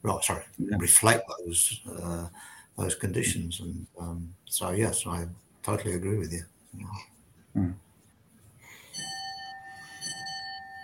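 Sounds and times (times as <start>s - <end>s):
speech: 0.0s - 7.8s
brief low murmur of voice: 0.6s - 1.8s, 7.6s - 7.8s
clock chiming: 8.9s - 10.8s.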